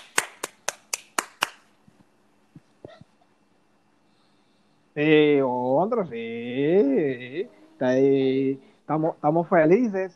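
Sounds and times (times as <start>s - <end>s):
applause, hand clapping: 0.0s - 2.0s
speech: 5.0s - 10.1s.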